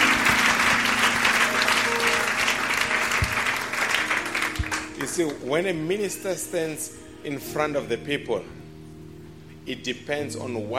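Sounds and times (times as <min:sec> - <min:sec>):
audience applause: 0:00.0 - 0:05.4
speech: 0:05.2 - 0:08.6, 0:09.6 - 0:10.7.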